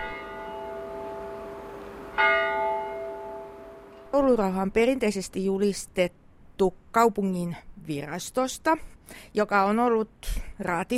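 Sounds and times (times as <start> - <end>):
church bells ringing: 0.0 - 4.1
speech: 2.2 - 2.4, 4.2 - 10.9.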